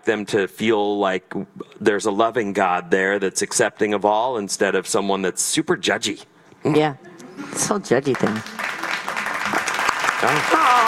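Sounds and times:
speech: 0:00.0 - 0:08.6, 0:10.2 - 0:10.8
applause clapping: 0:08.1 - 0:10.8.

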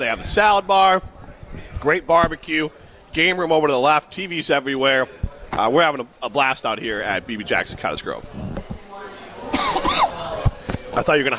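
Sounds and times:
speech: 0:00.0 - 0:01.1, 0:01.8 - 0:08.4, 0:11.0 - 0:11.3
person coughing: 0:09.5 - 0:10.1.

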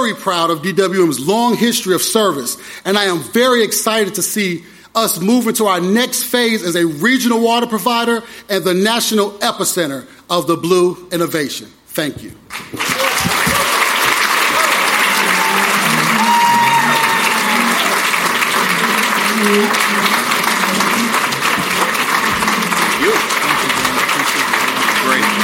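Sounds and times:
speech: 0:00.0 - 0:13.6, 0:19.4 - 0:19.8
standing ovation crowd applause: 0:12.5 - 0:25.4
faint cheers: 0:12.8 - 0:25.4.

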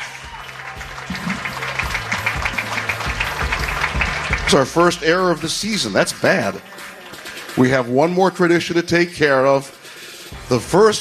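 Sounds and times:
audience applause: 0:00.0 - 0:07.6
speech: 0:04.5 - 0:07.0, 0:07.6 - 0:09.8, 0:10.5 - 0:10.9.

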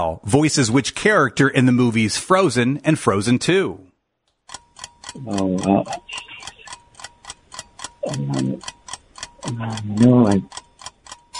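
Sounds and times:
speech: 0:00.0 - 0:03.9, 0:05.2 - 0:06.3, 0:08.0 - 0:08.8, 0:09.4 - 0:10.6
quiz countdown ticking: 0:04.4 - 0:11.3.

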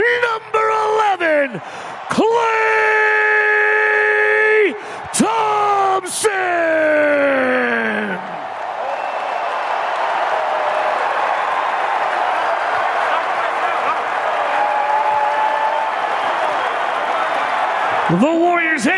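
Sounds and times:
big arena crowd cheering and applauding: 0:00.6 - 0:18.9
whistles from arena crowd: 0:08.8 - 0:09.7.

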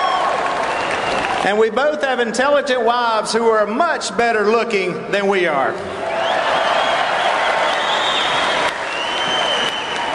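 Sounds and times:
audience cheering and applause: 0:00.0 - 0:01.8, 0:06.0 - 0:10.1
speech: 0:01.4 - 0:06.1.

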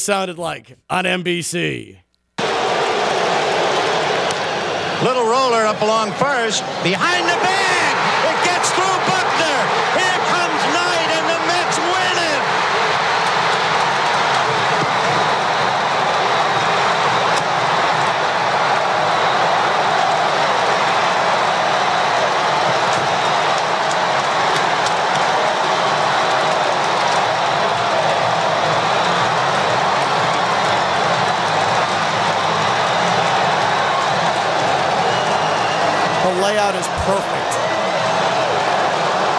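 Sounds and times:
speech: 0:00.0 - 0:02.0, 0:05.0 - 0:09.8
stadium crowd cheering wildly: 0:02.4 - 0:39.3.

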